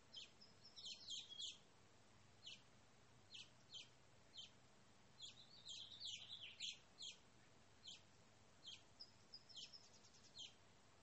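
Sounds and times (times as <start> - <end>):
backyard birdsong chirps and trills: 0.0 - 1.6, 2.4 - 2.7, 3.3 - 4.6, 5.2 - 7.2, 7.8 - 10.6.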